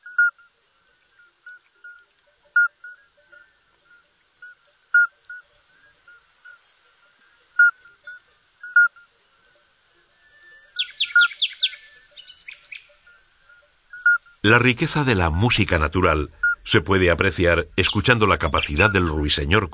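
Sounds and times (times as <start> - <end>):
chorus of midwife toads calling: 0.0 - 19.7
speech: 14.4 - 19.7.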